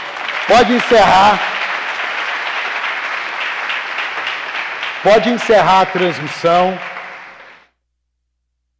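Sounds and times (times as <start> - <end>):
audience applause: 0.0 - 7.7
speech: 0.5 - 1.5, 5.0 - 6.9.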